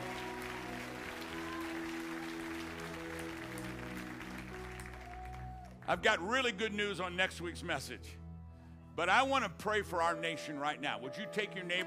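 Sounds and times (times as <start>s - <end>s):
audience clapping: 0.0s - 6.0s
speech: 5.9s - 8.2s, 9.0s - 11.8s.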